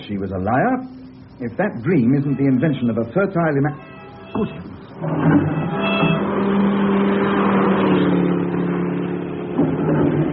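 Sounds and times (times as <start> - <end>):
speech: 0.0 - 6.2
car passing: 0.6 - 10.3
unusual car horn: 1.8 - 9.2.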